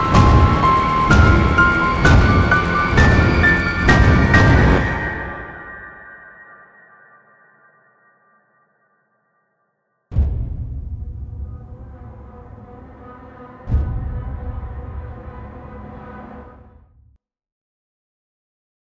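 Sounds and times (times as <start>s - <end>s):
scary sound: 0.0s - 7.7s, 10.1s - 17.0s.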